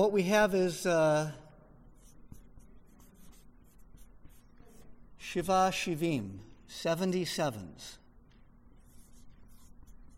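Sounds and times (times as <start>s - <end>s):
speech: 0.0s - 1.4s, 5.2s - 8.0s
marker squeaking across a dry erase board writing notes: 1.9s - 5.1s, 8.2s - 10.1s.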